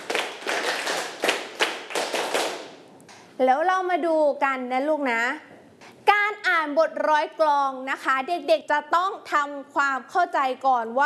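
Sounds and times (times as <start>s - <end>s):
children clapping hands: 0.0s - 2.8s
speech: 3.4s - 5.5s, 6.1s - 11.0s.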